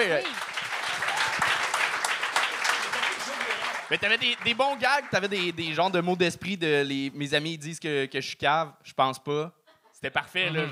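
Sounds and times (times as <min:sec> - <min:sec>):
speech: 0:00.0 - 0:00.5, 0:03.9 - 0:10.7
audience applause: 0:00.0 - 0:05.9.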